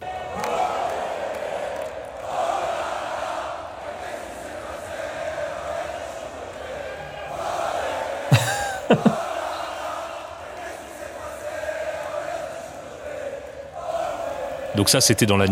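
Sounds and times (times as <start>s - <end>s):
RC Lens football supporters roaring and chanting at Bollaert at night: 0.0s - 14.9s
laughter: 8.3s - 10.0s
speech: 8.9s - 9.2s, 14.8s - 15.5s.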